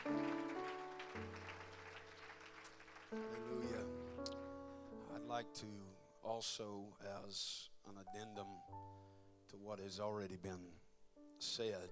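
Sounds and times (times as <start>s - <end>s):
audience clapping hands: 0.0s - 4.4s
speech: 5.3s - 8.9s, 9.5s - 10.8s, 11.4s - 11.9s.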